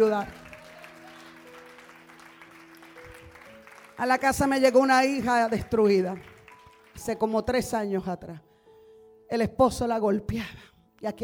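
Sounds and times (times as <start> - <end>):
speech: 0.0 - 0.4, 4.0 - 6.3, 7.0 - 8.5, 9.3 - 11.2
single applause from audience: 0.0 - 7.0.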